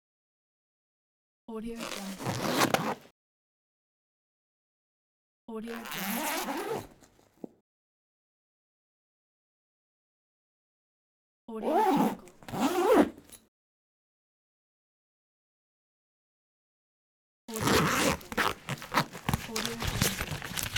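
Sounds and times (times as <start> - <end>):
zipper: 1.8 - 3.1, 5.7 - 7.5, 11.6 - 13.4, 17.5 - 20.7.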